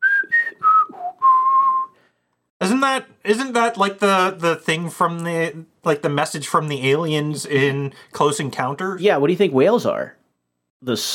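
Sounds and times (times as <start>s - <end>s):
whistled tune: 0.0s - 2.1s
speech: 2.8s - 10.2s, 10.8s - 11.1s.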